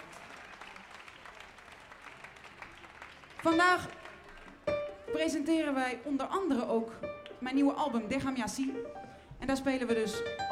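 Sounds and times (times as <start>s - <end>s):
audience applause: 0.0s - 4.8s
speech: 3.4s - 4.0s, 5.1s - 10.4s.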